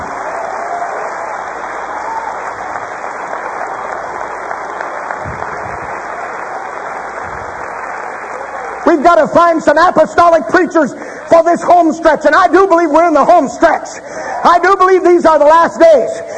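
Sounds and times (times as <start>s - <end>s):
audience clapping hands: 0.0s - 10.5s
speech: 8.9s - 16.3s.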